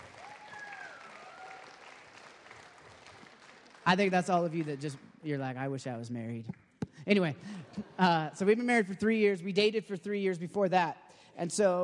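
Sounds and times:
audience clapping: 0.0s - 5.4s
speech: 3.9s - 11.8s.

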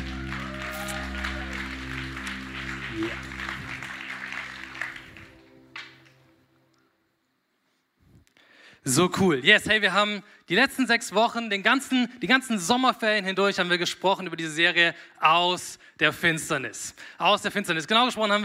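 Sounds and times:
audience applause for the band: 0.0s - 6.2s
speech: 8.8s - 18.4s.

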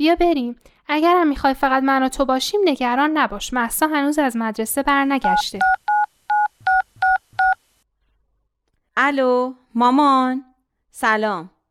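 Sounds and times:
speech: 0.0s - 5.8s, 9.0s - 11.5s
DTMF telephone keypad tones dialing a number: 5.3s - 7.6s.

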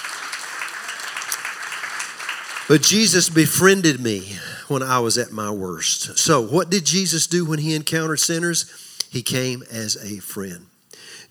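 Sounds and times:
audience clapping hands: 0.0s - 3.9s
speech: 2.7s - 11.2s.

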